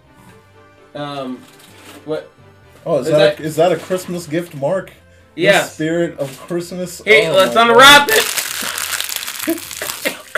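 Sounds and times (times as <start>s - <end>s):
speech: 0.9s - 8.3s, 9.5s - 9.7s
Rios snack bag crunching in front of the mic: 8.0s - 10.3s.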